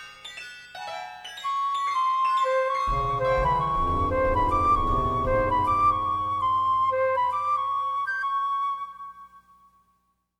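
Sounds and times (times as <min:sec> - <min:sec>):
flute playing: 0:02.5 - 0:09.4.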